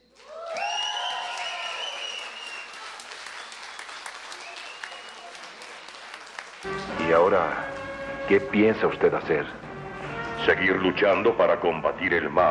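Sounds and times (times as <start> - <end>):
audience applause: 0.0 - 7.5
speech: 6.6 - 7.7, 8.3 - 9.7, 10.4 - 12.4.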